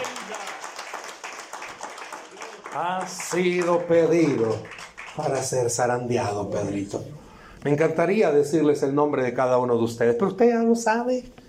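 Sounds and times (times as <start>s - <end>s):
audience applause: 0.0s - 6.0s
speech: 2.8s - 11.4s.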